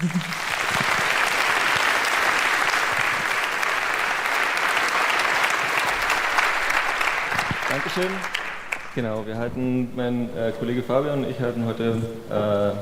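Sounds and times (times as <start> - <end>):
speech: 0.0 - 0.5, 7.8 - 8.4, 9.0 - 12.8
audience applause: 0.0 - 9.3.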